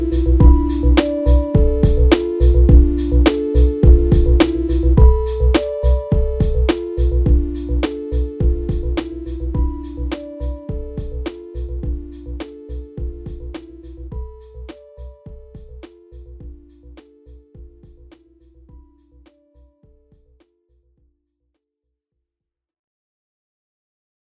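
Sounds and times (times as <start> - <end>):
sine wave tone: 0.0 - 15.5.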